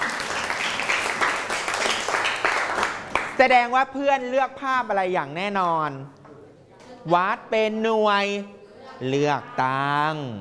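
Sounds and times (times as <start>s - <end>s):
classroom of students clapping for a classmate: 0.0s - 3.4s
speech: 3.4s - 6.2s, 7.0s - 10.4s.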